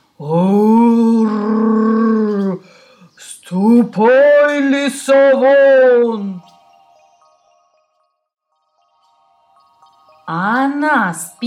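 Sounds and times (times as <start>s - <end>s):
speech: 0.2s - 0.6s, 3.6s - 6.4s, 11.0s - 11.4s
person imitating a bear's growl: 0.2s - 2.6s.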